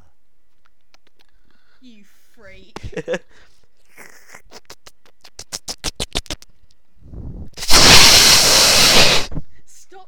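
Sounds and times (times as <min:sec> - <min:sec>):
speech: 0:01.8 - 0:03.6
microphone being handled and rubbed: 0:03.9 - 0:09.5.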